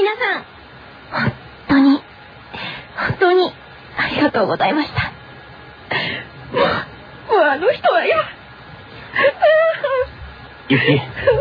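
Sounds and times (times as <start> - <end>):
speech: 0.0 - 1.3, 3.3 - 5.1, 6.5 - 8.4, 10.7 - 11.3
laughter: 9.1 - 11.3
person crying in whimpering wailing sobs: 9.2 - 10.1, 10.7 - 11.3.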